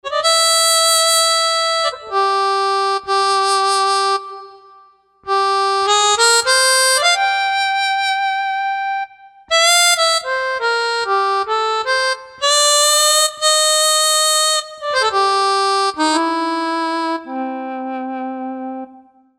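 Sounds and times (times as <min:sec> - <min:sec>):
harmonica: 0:00.0 - 0:19.2.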